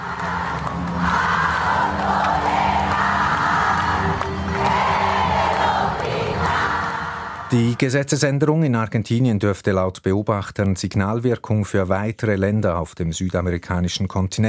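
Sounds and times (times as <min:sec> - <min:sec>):
thousands of supporters cheering and yelling in Buenos Aires at night: 0:00.0 - 0:07.9
speech: 0:07.5 - 0:14.4.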